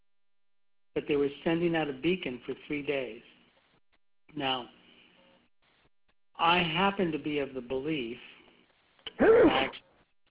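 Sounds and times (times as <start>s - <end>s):
speech: 1.0s - 3.3s, 4.3s - 4.8s, 6.4s - 8.3s, 9.1s - 9.9s
sneeze: 9.1s - 9.8s.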